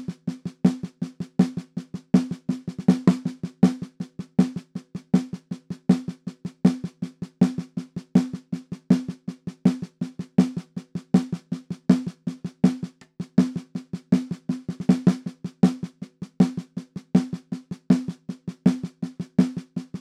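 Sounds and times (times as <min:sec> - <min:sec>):
percussion intro snare drum: 0:00.0 - 0:10.6, 0:11.2 - 0:19.9.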